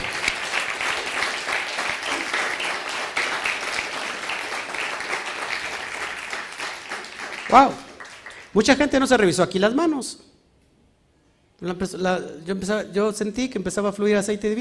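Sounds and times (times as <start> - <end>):
loud crowd applause: 0.0 - 8.6
speech: 7.5 - 7.8, 8.5 - 10.3, 11.6 - 14.6.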